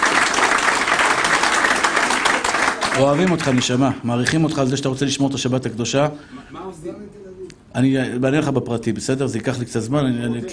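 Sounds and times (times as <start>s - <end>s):
crowd applauding: 0.0s - 3.8s
speech: 3.0s - 10.5s.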